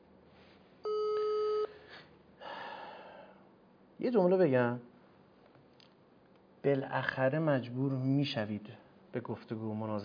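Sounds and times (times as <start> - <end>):
ring tone of an unanswered telephone call: 0.9 - 1.7
soft breathy noise: 1.7 - 3.5
speech: 4.0 - 4.9, 6.6 - 10.0.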